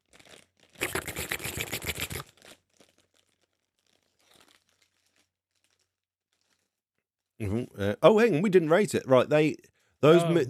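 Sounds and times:
plastic bag of chocolates being opened: 0.0s - 6.8s
speech: 7.4s - 10.4s.

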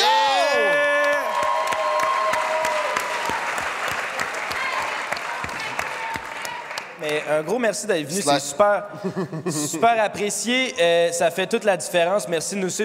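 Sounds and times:
audience applause: 0.0s - 7.4s
speech: 7.2s - 12.8s
laughter: 8.9s - 9.8s.

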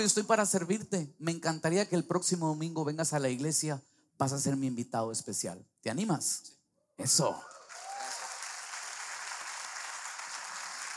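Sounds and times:
speech: 0.0s - 7.6s
crowd applause: 7.6s - 10.9s.

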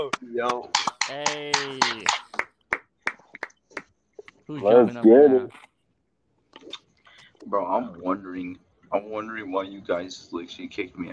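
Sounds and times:
speech: 0.0s - 2.3s, 4.5s - 5.7s, 7.4s - 11.1s
round of applause: 0.5s - 3.9s.

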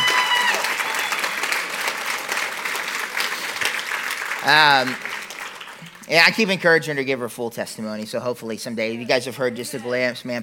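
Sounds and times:
audience applause: 0.0s - 6.5s
speech: 4.4s - 5.1s, 6.1s - 10.4s.

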